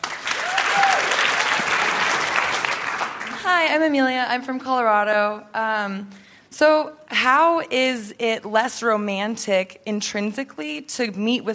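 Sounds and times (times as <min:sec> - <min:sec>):
audience applause: 0:00.0 - 0:03.7
speech: 0:03.6 - 0:11.5.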